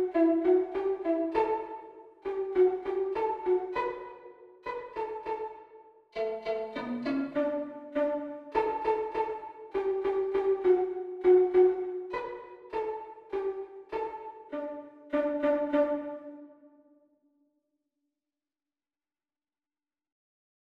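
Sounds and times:
violin duet: 0:00.0 - 0:05.6, 0:06.2 - 0:16.4.

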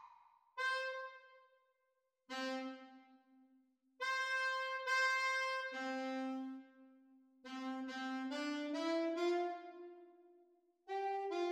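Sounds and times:
saxophone duet playalong: 0:00.6 - 0:01.2, 0:02.3 - 0:03.3, 0:04.0 - 0:10.1, 0:10.9 - 0:11.4.

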